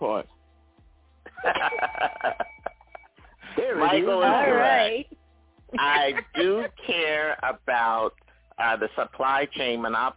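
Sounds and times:
laughter: 0:01.3 - 0:05.0, 0:05.8 - 0:09.4
bell ringing: 0:01.4 - 0:04.8
speech: 0:08.8 - 0:10.1.

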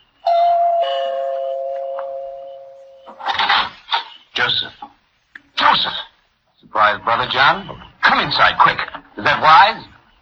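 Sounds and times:
two-tone doorbell chime: 0:00.3 - 0:03.2
speech: 0:06.8 - 0:09.9.

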